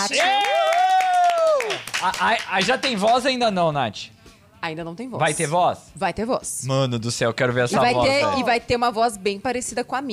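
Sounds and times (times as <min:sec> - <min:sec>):
audience applause: 0:00.1 - 0:03.3
speech: 0:02.0 - 0:10.1.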